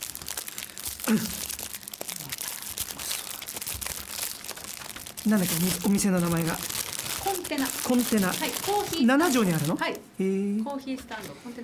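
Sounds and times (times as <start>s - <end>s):
person eating a muffin: 0.0s - 6.1s
muffin wrapper crinkling: 0.0s - 10.0s
speech: 1.1s - 1.5s, 5.2s - 6.8s, 7.5s - 11.6s.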